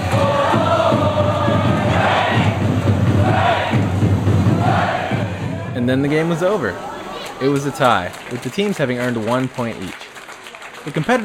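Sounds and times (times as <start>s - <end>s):
drums leading stadium cheers: 0.0s - 7.4s
stadium crowd cheering: 0.0s - 11.2s
speech: 5.9s - 10.0s, 10.8s - 11.2s.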